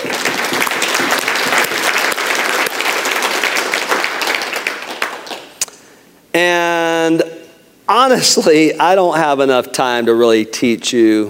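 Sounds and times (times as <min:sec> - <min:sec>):
audience applause: 0:00.0 - 0:05.5
speech: 0:06.3 - 0:07.3, 0:07.9 - 0:11.2.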